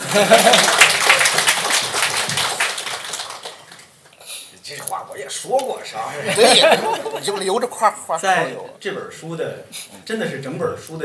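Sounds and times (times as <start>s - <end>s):
laughter: 0.0s - 1.3s, 6.1s - 7.8s
audience applause: 0.0s - 3.9s
speech: 0.1s - 0.9s, 5.2s - 11.0s.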